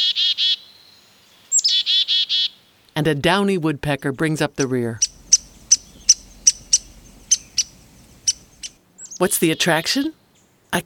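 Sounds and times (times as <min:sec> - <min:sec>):
black-capped chickadees calling: 0:01.5 - 0:02.6, 0:04.4 - 0:10.5
speech: 0:03.0 - 0:05.1, 0:09.2 - 0:10.8.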